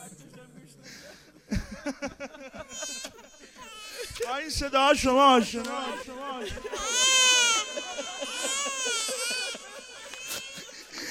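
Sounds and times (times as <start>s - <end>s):
laughter: 1.0s - 11.0s
baby crying: 2.7s - 4.3s, 5.6s - 11.0s
speech: 4.2s - 7.0s.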